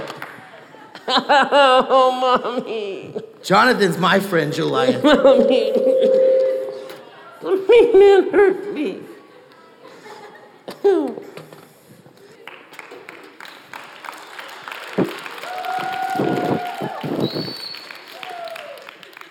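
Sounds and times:
speech: 1.1s - 6.0s, 7.7s - 9.1s, 10.8s - 11.3s
small group clapping in scattered bursts: 12.4s - 19.2s.

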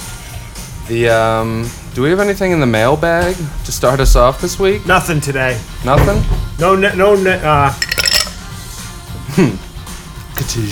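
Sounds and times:
speech: 0.9s - 7.9s, 9.4s - 9.7s, 10.4s - 10.7s
ice clinking in a glass of Coca-Cola: 7.8s - 8.4s.

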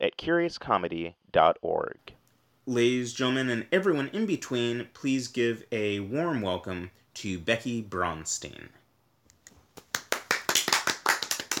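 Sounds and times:
speech: 0.0s - 8.8s
one person clapping: 9.7s - 11.5s.

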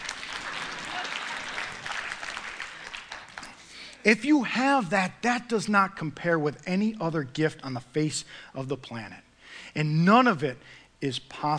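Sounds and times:
audience clapping: 0.0s - 4.0s
speech: 4.0s - 11.5s.

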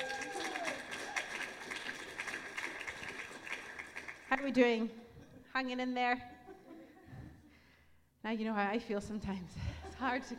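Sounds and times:
audience applause: 0.0s - 4.4s
speech: 4.3s - 6.3s, 8.2s - 10.3s.

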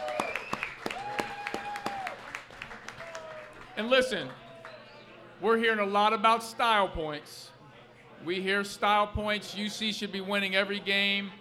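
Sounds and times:
audience applause: 0.0s - 4.8s
speech: 3.8s - 4.4s, 5.4s - 7.5s, 8.2s - 11.3s.

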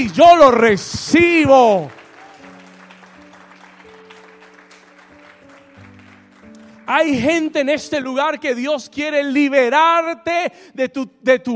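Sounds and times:
speech: 0.0s - 2.0s, 6.9s - 11.5s
audience applauding: 1.6s - 7.6s.

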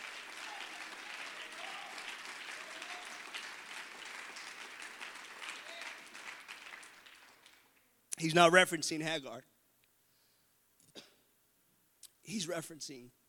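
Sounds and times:
audience clapping hands: 0.0s - 7.9s
speech: 8.2s - 9.5s, 12.4s - 13.2s.

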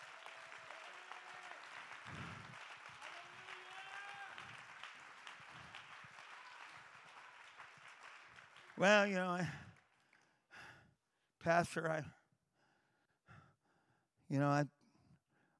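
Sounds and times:
audience clapping: 0.0s - 10.4s
speech: 8.8s - 9.6s, 11.4s - 12.2s, 14.3s - 14.8s.

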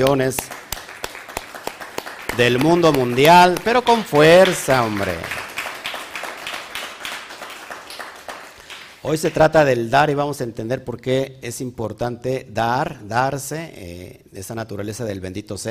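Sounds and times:
speech: 0.0s - 0.6s, 2.4s - 5.4s, 9.0s - 15.7s
audience clapping: 0.0s - 9.7s.

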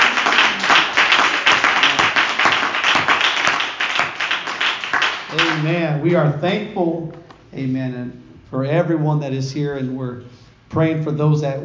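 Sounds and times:
church congregation clapping at a Wednesday evening service: 0.0s - 5.9s
speech: 5.6s - 11.6s.

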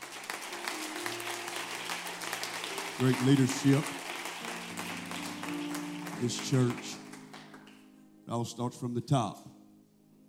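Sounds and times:
audience clapping: 0.0s - 7.9s
speech: 3.0s - 4.0s, 6.2s - 7.0s, 8.3s - 9.5s.

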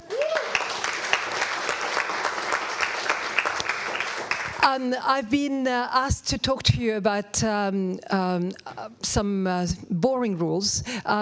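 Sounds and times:
audience applause in a lecture theatre at an Enterprise Tuesday event: 0.0s - 4.6s
speech: 4.7s - 11.2s.

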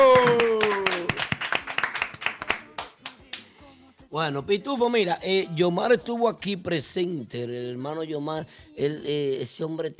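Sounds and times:
applause: 0.0s - 3.5s
speech: 4.1s - 9.9s.

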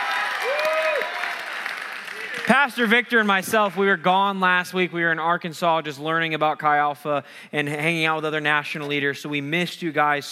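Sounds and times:
audience applause: 0.0s - 3.3s
speech: 2.5s - 10.3s.

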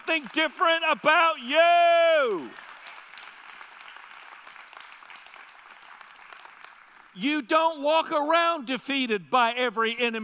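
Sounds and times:
audience clapping: 0.0s - 7.2s
speech: 0.1s - 2.7s, 7.2s - 10.2s.

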